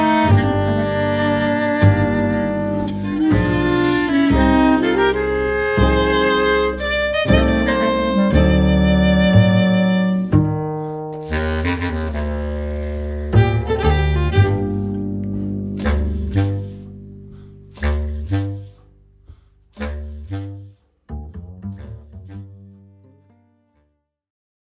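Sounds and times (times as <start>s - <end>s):
tango music: 0.0s - 18.7s.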